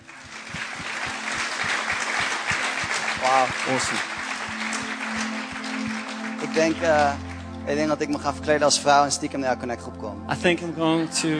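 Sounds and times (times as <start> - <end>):
audience applause at a church gathering: 0.0 - 7.9
speech: 3.2 - 4.1, 6.6 - 11.3.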